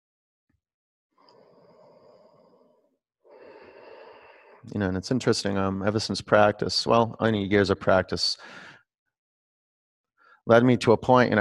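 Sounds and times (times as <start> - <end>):
loud breathy exhales during a breathing exercise: 1.3 - 4.7, 8.4 - 8.8
speech: 4.6 - 8.7, 10.4 - 11.3.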